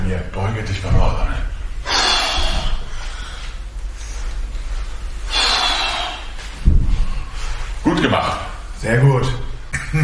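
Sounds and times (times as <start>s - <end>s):
speech: 0.1s - 1.5s, 8.0s - 10.0s
heavy breathing during exercise: 1.8s - 7.8s
low thuds of movement during exercise: 6.6s - 7.3s.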